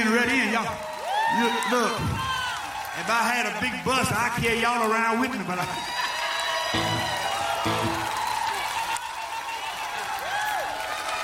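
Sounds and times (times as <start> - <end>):
live crowd applauding: 0.3 - 4.1, 5.6 - 11.2
speech: 0.6 - 2.3, 3.0 - 6.0
live crowd whooping and cheering: 0.8 - 3.1, 5.6 - 11.2.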